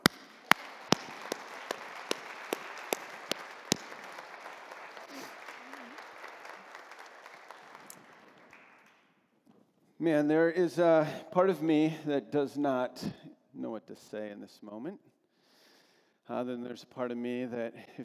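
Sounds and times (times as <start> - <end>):
audience clapping: 0.0 - 9.1
speech: 10.0 - 15.1, 16.3 - 18.0.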